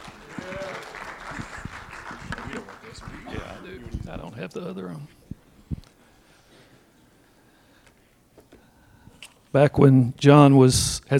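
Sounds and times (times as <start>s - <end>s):
audience applause: 0.0s - 3.8s
speech: 4.2s - 5.2s, 9.5s - 11.1s.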